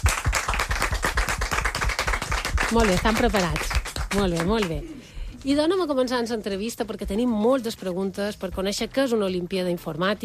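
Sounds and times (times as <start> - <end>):
small audience clapping at an interview event: 0.0 - 4.8
speech: 2.7 - 10.2.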